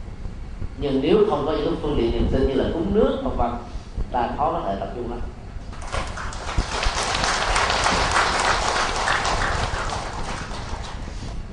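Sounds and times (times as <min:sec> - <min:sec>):
speech: 0:00.8 - 0:05.4
audience clapping: 0:05.7 - 0:11.4.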